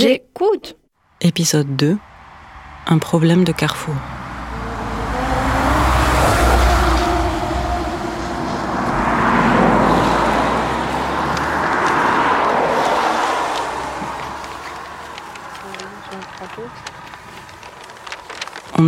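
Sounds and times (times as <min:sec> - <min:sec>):
speech: 0:00.0 - 0:02.1, 0:02.9 - 0:04.2
cars speeding past on a roadside: 0:01.1 - 0:18.6.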